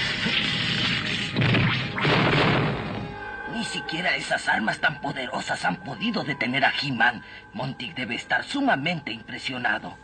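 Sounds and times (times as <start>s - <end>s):
cartoon sound effect of glacier ice chunk breaking off: 0.7s - 3.0s
speech: 3.6s - 10.0s.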